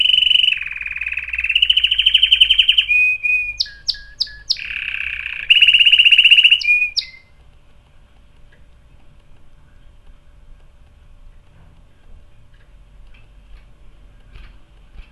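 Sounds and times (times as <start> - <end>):
canary song with rolling trills: 0.0 - 7.3.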